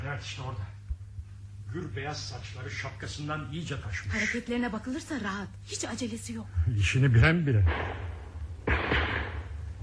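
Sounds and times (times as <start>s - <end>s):
speech: 0.2s - 0.8s, 1.7s - 8.1s
pistol shot outside: 7.6s - 9.7s.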